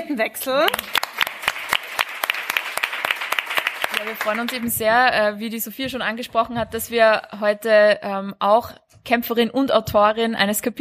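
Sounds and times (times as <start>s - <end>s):
speech: 0.0s - 1.1s, 4.0s - 10.8s
audience applause: 0.7s - 4.7s.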